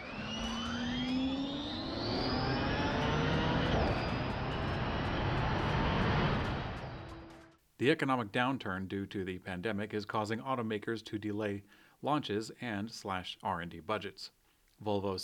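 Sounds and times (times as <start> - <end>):
high electric whine from an electric race vehicle powertrain: 0.0 - 7.5
speech: 7.8 - 15.2.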